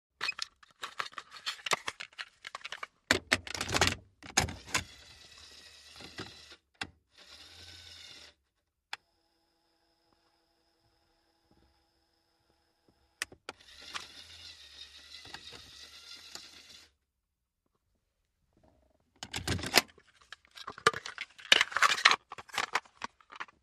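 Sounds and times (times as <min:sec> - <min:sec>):
cassette taken from box in Mitsubishi Montero interior: 0:00.2 - 0:04.8, 0:19.2 - 0:23.6.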